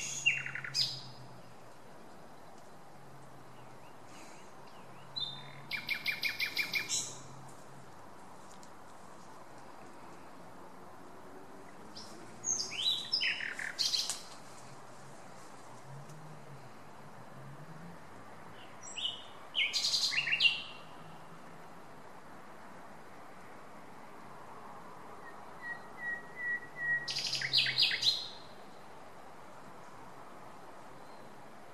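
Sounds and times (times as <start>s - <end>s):
Common nightingale song: 0.0s - 7.4s, 11.7s - 15.6s, 18.4s - 21.3s, 25.1s - 31.7s.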